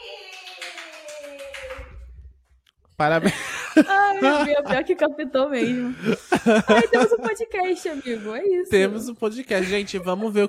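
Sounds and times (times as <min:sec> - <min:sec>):
live listener clapping her hands: 0:00.0 - 0:02.2
speech: 0:03.0 - 0:10.4
laughter: 0:03.1 - 0:05.0, 0:05.6 - 0:08.2, 0:09.5 - 0:10.4.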